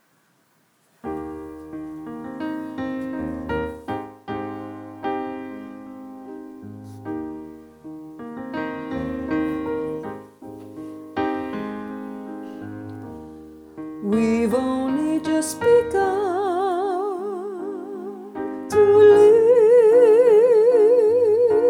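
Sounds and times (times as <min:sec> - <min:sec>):
soprano choir singing: 0:14.0 - 0:21.6.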